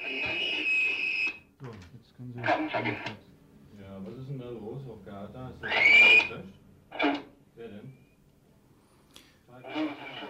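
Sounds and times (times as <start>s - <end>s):
shrill emergency whistle from loudspeakers over radio: 0.0s - 1.5s, 5.6s - 6.4s
speech: 2.4s - 3.2s, 4.5s - 8.0s.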